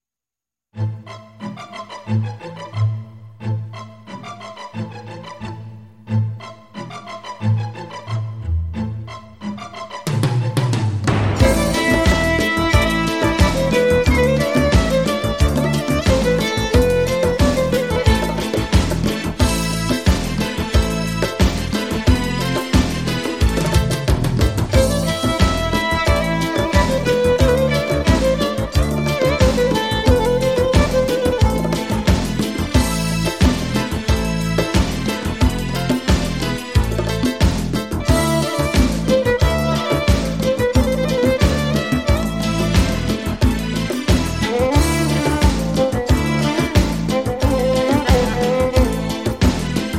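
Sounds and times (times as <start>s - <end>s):
violin: 0.8s - 49.9s.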